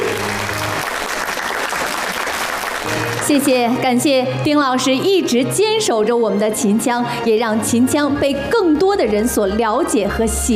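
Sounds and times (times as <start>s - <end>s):
audience applause honouring a veteran Qinqiang opera performer: 0.0s - 3.5s
speech: 2.9s - 10.5s.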